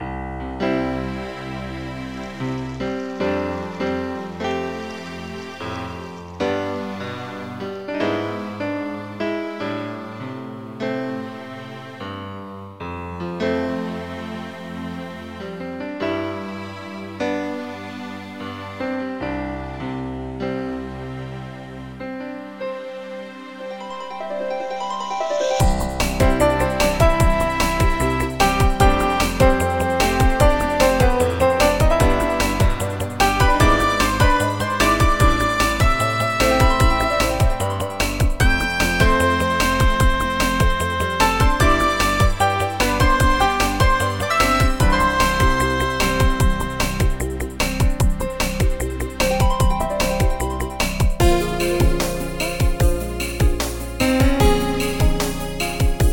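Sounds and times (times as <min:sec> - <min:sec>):
child playing piano: 0:00.0 - 0:56.0.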